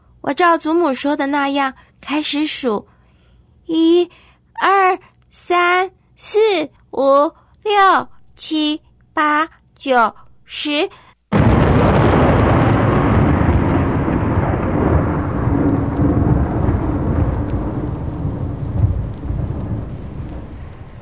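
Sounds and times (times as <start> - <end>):
speech: 0.2 - 2.9, 3.7 - 11.0
long deep roll of thunder rumbling: 11.3 - 21.0.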